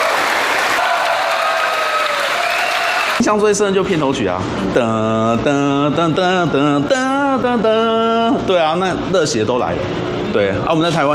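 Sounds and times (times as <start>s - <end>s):
cheers and whistles: 0.0s - 3.2s
theater audience applause: 0.0s - 3.2s
speech: 3.2s - 11.1s.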